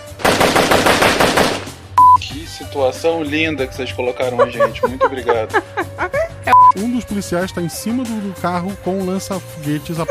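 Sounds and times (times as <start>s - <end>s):
machine gun firing: 0.0s - 1.8s
speech: 2.4s - 6.2s, 6.8s - 10.0s
laughter: 4.0s - 6.5s, 9.6s - 10.0s.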